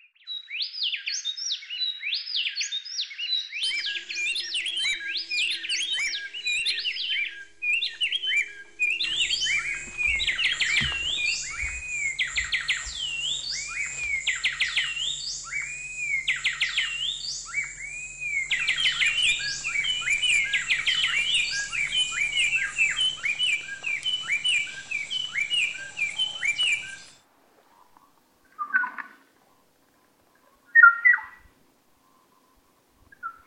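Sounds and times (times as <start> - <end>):
birds chirping and whistling: 0.2 - 27.2, 28.6 - 29.1, 30.8 - 31.4
faint low hum: 3.6 - 28.4.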